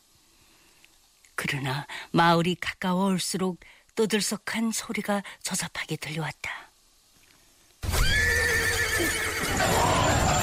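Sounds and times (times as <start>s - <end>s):
speech: 1.5s - 6.7s
horse neighing: 7.8s - 10.4s.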